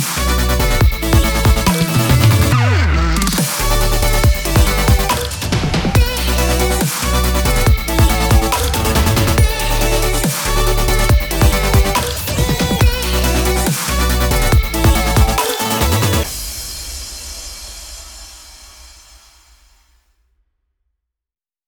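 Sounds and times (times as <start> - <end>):
upbeat exciting vlog background intro music: 0.0 - 16.3.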